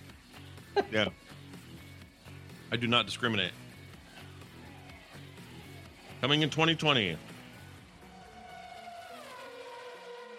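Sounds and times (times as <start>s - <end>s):
speech: 0.8s - 1.4s, 2.7s - 3.6s, 6.2s - 7.3s
car engine: 5.3s - 10.3s.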